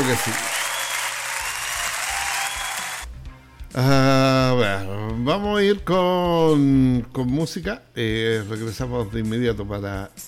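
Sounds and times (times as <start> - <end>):
applause: 0.0 - 3.1
speech: 0.1 - 0.6, 3.8 - 10.2.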